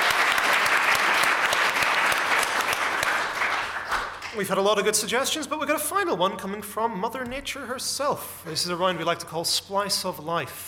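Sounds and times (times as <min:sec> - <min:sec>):
audience applause: 0:00.0 - 0:04.4
speech: 0:04.4 - 0:10.6.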